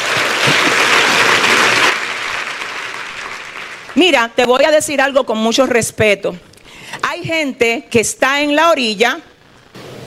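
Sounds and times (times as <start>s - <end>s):
audience applause: 0.0s - 4.0s
speech: 4.0s - 6.5s, 7.2s - 9.3s.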